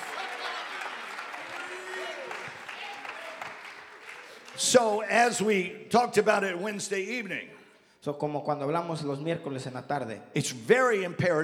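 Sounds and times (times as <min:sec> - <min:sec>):
people clapping hands: 0:00.0 - 0:05.4
speech: 0:04.6 - 0:11.4.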